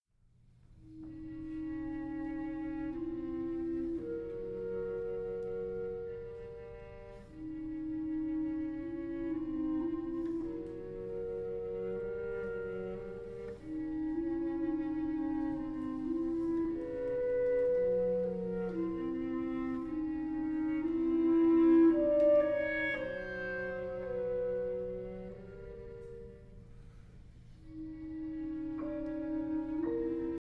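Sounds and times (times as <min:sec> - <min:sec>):
musical trio: 0:00.5 - 0:30.3.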